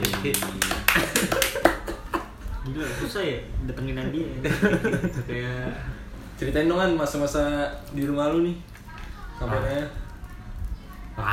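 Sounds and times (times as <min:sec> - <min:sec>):
hand clapping for a new guest: 0:00.0 - 0:02.2
speech: 0:00.2 - 0:01.4, 0:02.7 - 0:08.7, 0:09.4 - 0:10.0, 0:11.2 - 0:11.3
laughter: 0:00.8 - 0:02.4, 0:04.4 - 0:05.3.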